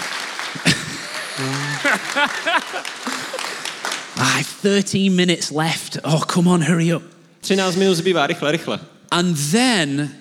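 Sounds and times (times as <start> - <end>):
audience applause: 0.0 - 4.4
laughter: 0.6 - 3.8
speech: 1.4 - 3.2, 4.4 - 10.1.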